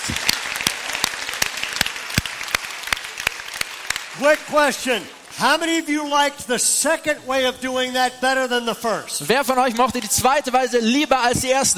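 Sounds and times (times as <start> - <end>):
audience applause: 0.0 - 5.4
speech: 4.2 - 11.7.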